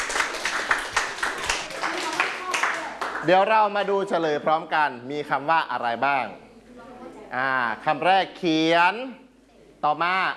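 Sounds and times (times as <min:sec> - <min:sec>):
hands clapping for a classmate: 0:00.0 - 0:03.4
speech: 0:03.2 - 0:09.2, 0:09.8 - 0:10.3.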